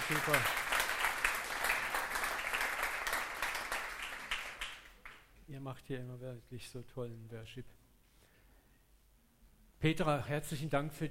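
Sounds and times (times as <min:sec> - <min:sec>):
audience applause for the band: 0:00.0 - 0:05.2
speech: 0:00.1 - 0:00.6, 0:05.6 - 0:07.8, 0:09.8 - 0:11.0.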